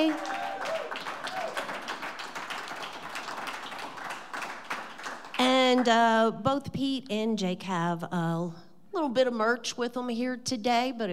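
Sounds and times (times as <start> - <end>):
speech: 0.0 - 0.4, 5.7 - 11.1
audience clapping: 0.0 - 5.9.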